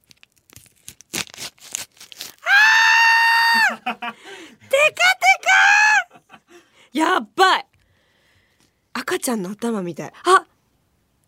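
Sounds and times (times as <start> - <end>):
plastic plum package crinkling: 0.0 - 2.4
laughter: 3.5 - 5.0, 5.8 - 6.6
speech: 3.9 - 5.2, 7.0 - 7.7, 9.1 - 10.4.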